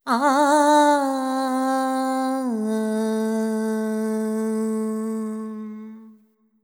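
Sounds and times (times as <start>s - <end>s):
ethnic female vocals: 0.0s - 6.2s.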